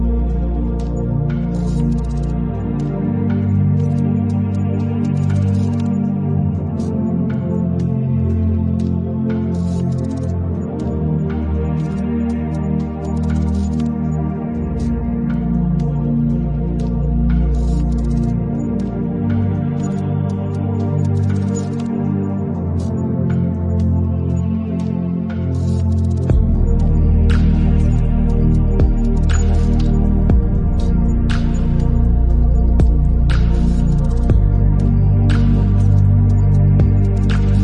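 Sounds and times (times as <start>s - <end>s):
cinematic ambience: 0.0s - 37.6s.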